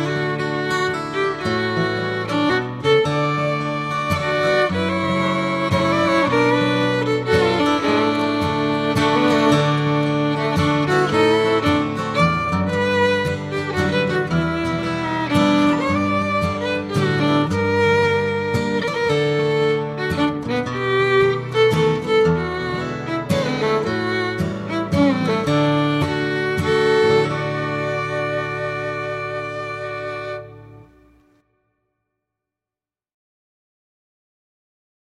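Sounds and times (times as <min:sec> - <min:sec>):
fiddle playing: 0:00.0 - 0:31.2.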